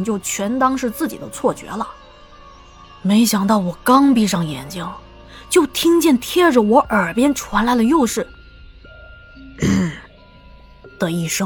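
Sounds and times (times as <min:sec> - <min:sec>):
speech: 0:00.0 - 0:02.1, 0:03.0 - 0:08.4, 0:09.6 - 0:09.8, 0:11.0 - 0:11.4
middle-aged man coughing: 0:09.6 - 0:10.0.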